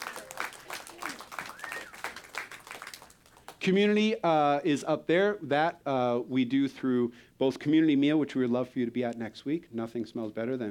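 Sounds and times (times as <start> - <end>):
audience clapping: 0.0 - 3.6
speech: 3.6 - 10.6.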